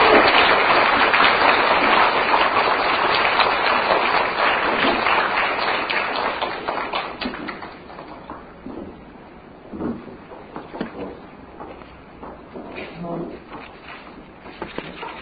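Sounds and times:
large audience applause: 0:00.0 - 0:08.6.

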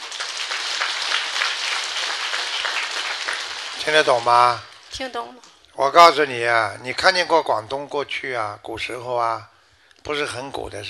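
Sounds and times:
applause: 0:00.0 - 0:04.9
speech: 0:03.8 - 0:10.8.

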